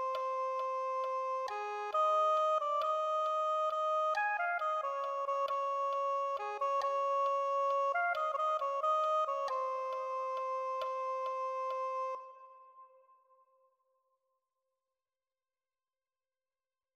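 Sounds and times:
soprano saxophone: 0:00.0 - 0:12.8.

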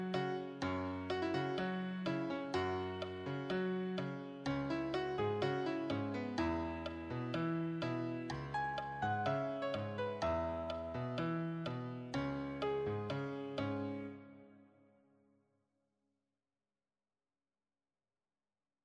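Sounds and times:
solo piano: 0:00.0 - 0:14.8.

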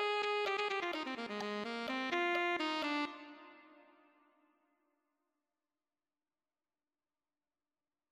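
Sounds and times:
alto saxophone: 0:00.0 - 0:04.2.

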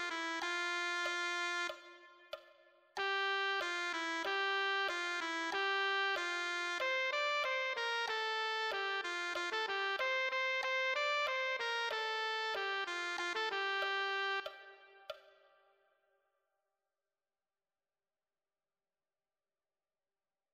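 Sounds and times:
tenor saxophone: 0:00.0 - 0:02.4, 0:03.0 - 0:15.2.

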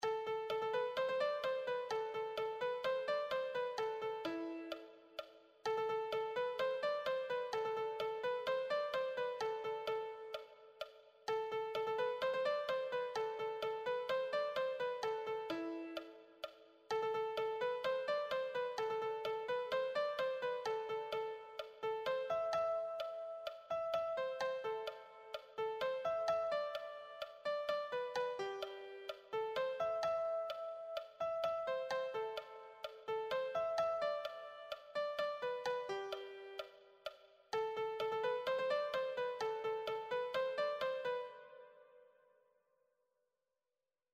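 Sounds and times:
piano melody: 0:00.0 - 0:36.8, 0:37.5 - 0:42.0.

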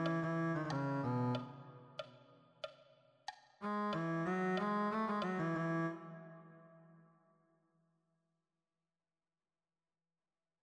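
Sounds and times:
cello: 0:00.0 - 0:02.1, 0:03.6 - 0:06.4.

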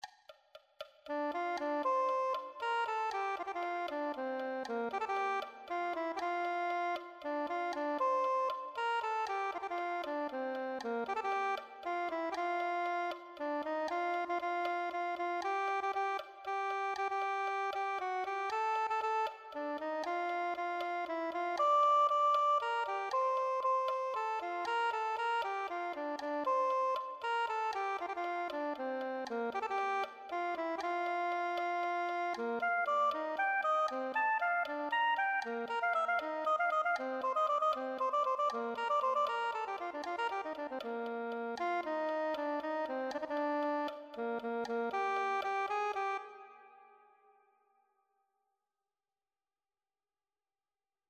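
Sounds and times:
soprano saxophone: 0:01.1 - 0:47.4.

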